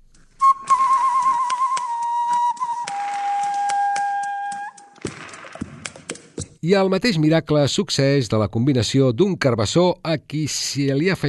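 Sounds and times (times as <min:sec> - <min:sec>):
hollowed-carrot flute playing a breathy whistling note: 0:00.4 - 0:05.0
speech: 0:06.6 - 0:11.2.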